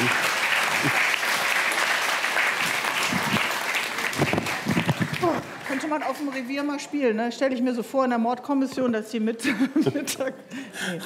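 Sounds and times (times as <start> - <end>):
audience applause: 0.0 - 6.8
laughter: 0.7 - 1.2, 9.4 - 11.0
speech: 5.9 - 11.0.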